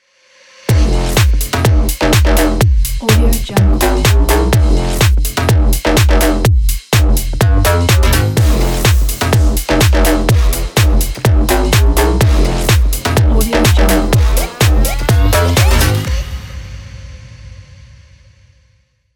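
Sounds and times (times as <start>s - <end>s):
fashion house ident music: 0.7s - 6.4s, 7.0s - 16.5s.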